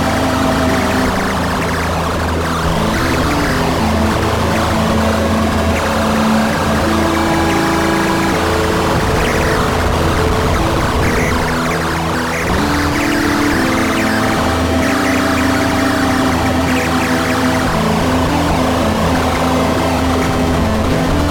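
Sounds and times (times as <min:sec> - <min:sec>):
electronic bird sounds in microtonal tuning: 0:00.0 - 0:21.2.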